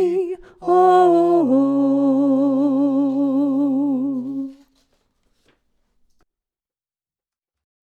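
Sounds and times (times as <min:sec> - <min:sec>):
soprano singing: 0:00.0 - 0:04.7.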